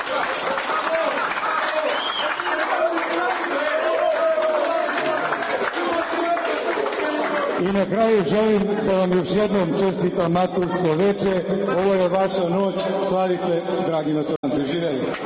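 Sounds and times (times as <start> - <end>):
audience applause at a high school graduation evening: 0.0 - 8.2
speech: 7.6 - 15.2.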